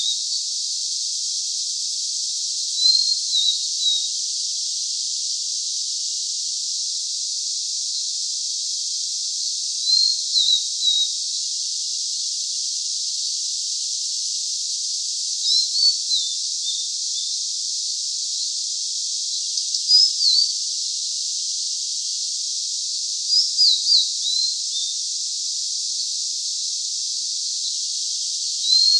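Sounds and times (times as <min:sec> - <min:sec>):
Blue-and-white flycatcher singing: 0:00.0 - 0:00.3, 0:02.8 - 0:04.1, 0:09.8 - 0:11.1, 0:15.4 - 0:17.4, 0:19.6 - 0:20.5, 0:23.3 - 0:25.0, 0:28.6 - 0:28.9
constant hiss: 0:00.0 - 0:28.9.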